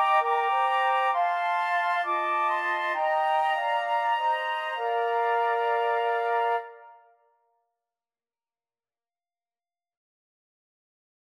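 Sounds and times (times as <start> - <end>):
flute quartet: 0.0 - 7.1.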